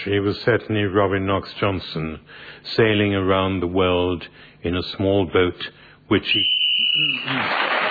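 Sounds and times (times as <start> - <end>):
speech: 0.0 - 7.8
whistle blown: 6.3 - 7.5.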